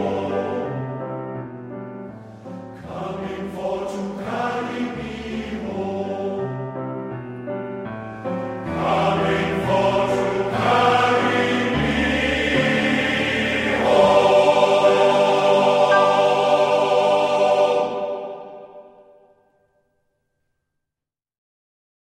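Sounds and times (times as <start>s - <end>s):
choir singing in Wales: 0.0s - 1.4s, 2.6s - 7.1s, 8.4s - 19.4s.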